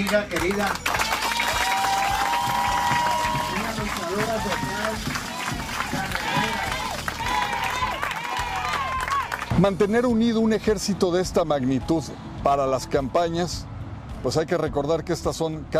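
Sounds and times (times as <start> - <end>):
speech: 0.0 - 1.0, 4.1 - 5.3, 9.6 - 15.7
crowd applauding: 0.0 - 9.6.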